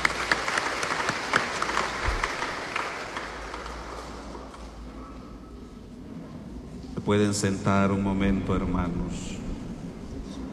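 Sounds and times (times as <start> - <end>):
audience clapping hands: 0.0 - 4.8
speech: 7.1 - 9.4.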